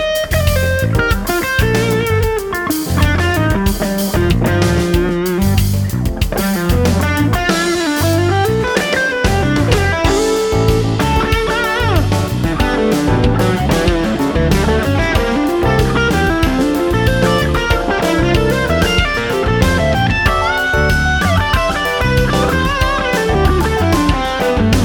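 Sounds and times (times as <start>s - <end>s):
rock guitar: 0.0s - 24.8s.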